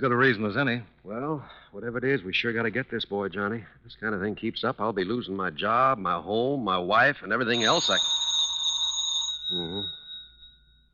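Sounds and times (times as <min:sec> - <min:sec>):
speech: 0:00.0 - 0:08.2
telephone ringing: 0:07.5 - 0:10.8.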